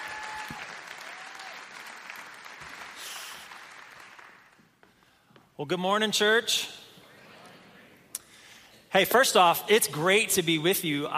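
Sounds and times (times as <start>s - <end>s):
church congregation applauding to welcome a pastor: 0.0s - 4.8s
speech: 5.6s - 6.8s, 9.0s - 11.1s.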